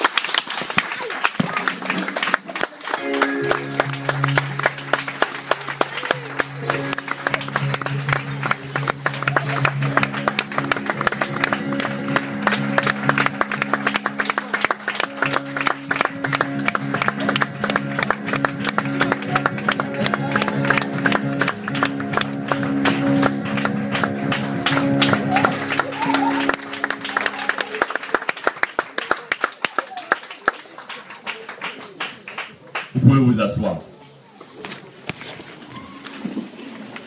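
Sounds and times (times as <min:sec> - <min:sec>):
standing ovation applause at a religious service: 0:00.0 - 0:33.6
sustained musical tones: 0:02.9 - 0:28.2.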